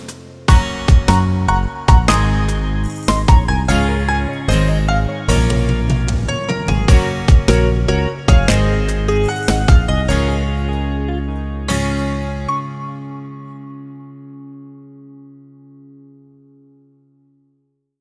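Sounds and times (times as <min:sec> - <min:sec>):
jingle: 0:00.5 - 0:13.3.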